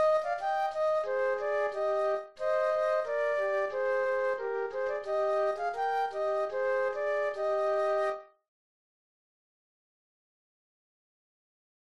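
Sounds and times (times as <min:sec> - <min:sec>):
flute duet: 0:00.0 - 0:08.4.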